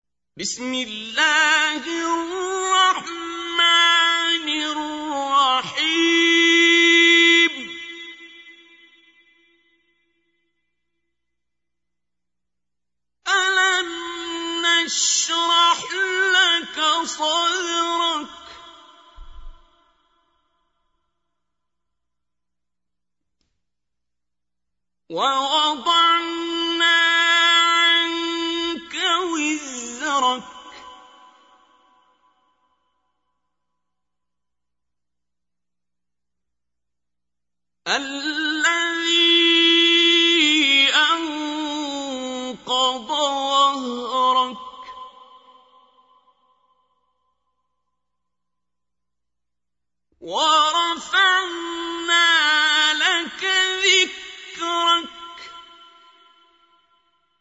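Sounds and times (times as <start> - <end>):
qari reciting the Quran: 0.4 - 9.8, 13.2 - 20.2, 25.1 - 32.3, 37.9 - 47.1, 50.2 - 56.9.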